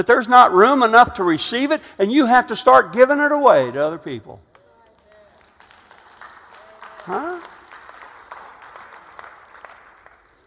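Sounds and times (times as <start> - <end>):
speech: 0.0 - 4.5, 7.1 - 7.6
audience applause: 4.6 - 10.4.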